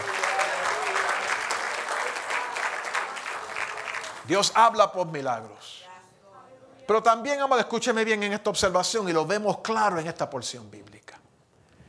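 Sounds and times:
audience applause: 0.0 - 4.3
speech: 4.3 - 5.8, 6.9 - 11.0.

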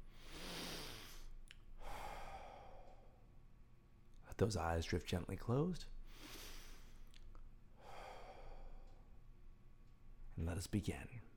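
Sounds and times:
breathing in through the nose and out through the mouth: 0.0 - 3.3, 6.1 - 7.1, 7.8 - 9.0
speech: 4.4 - 6.4, 10.4 - 11.3.

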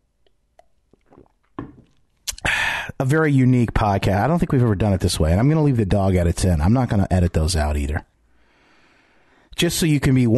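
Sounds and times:
person taking a sip of a drink: 0.2 - 2.6
speech: 3.0 - 8.1, 9.6 - 10.3.

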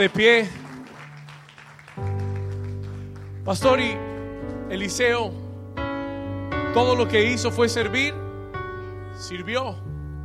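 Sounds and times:
speech: 0.0 - 0.6, 3.4 - 4.1, 4.7 - 5.4, 6.8 - 8.2, 9.2 - 9.9
audience applauding: 0.0 - 4.8.

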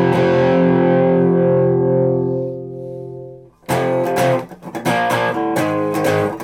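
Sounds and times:
grungy overdriven electric guitar chords: 0.0 - 6.4.

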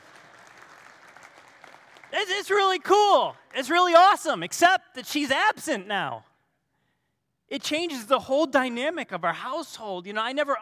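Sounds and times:
audience clapping: 0.0 - 4.1
speech: 2.1 - 6.3, 7.5 - 10.6.

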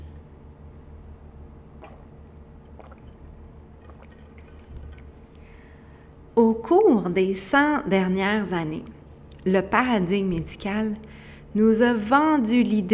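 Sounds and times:
low hum: 0.0 - 12.0
sipping and swallowing water: 1.7 - 6.2
speech: 6.4 - 12.9.

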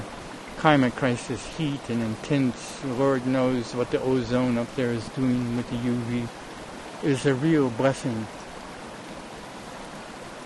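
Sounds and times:
flowing mountain stream water: 0.0 - 10.4
speech: 0.6 - 6.4, 7.0 - 8.4.

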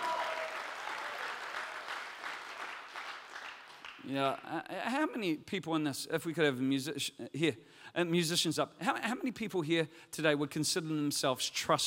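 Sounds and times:
people clapping: 0.0 - 4.6
speech: 4.0 - 11.8.

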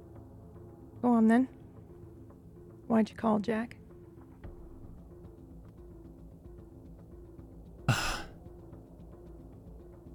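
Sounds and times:
speech: 1.0 - 1.6, 2.9 - 3.8
man catching his breath with a sharp loud gasp: 7.9 - 8.4.

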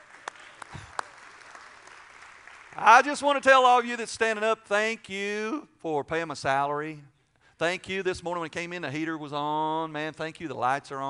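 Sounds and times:
applause: 0.0 - 3.5
speech: 2.8 - 11.0.

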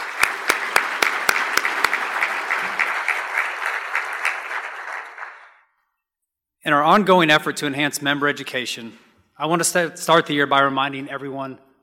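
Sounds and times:
audience applause: 0.0 - 5.6
speech: 6.7 - 11.7.

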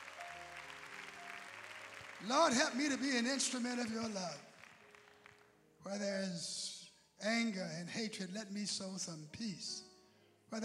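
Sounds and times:
audience clapping hands: 0.0 - 5.6
speech: 2.2 - 4.5, 5.8 - 9.9.

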